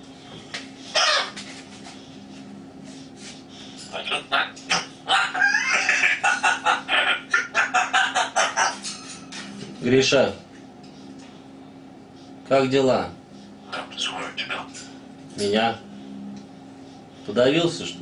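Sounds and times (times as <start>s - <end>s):
grey parrot chattering: 0.9s - 1.4s, 3.8s - 9.2s, 13.6s - 15.0s
speech: 9.9s - 10.4s, 12.5s - 13.2s, 15.4s - 15.8s, 17.3s - 18.0s.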